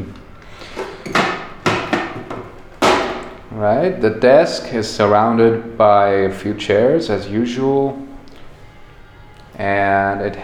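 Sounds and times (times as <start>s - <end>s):
fuse box metallic clanks and knocks: 1.0s - 3.4s
speech: 3.6s - 8.1s, 9.6s - 10.4s.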